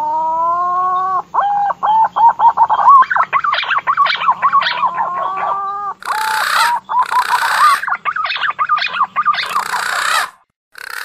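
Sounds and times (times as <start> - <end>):
green pigeon calling with bubbling whistled notes: 0.2 - 10.4.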